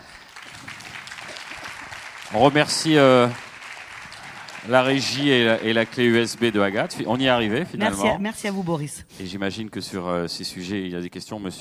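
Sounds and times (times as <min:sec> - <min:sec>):
audience applause: 0:00.0 - 0:08.0
speech: 0:02.3 - 0:03.4, 0:04.7 - 0:11.5.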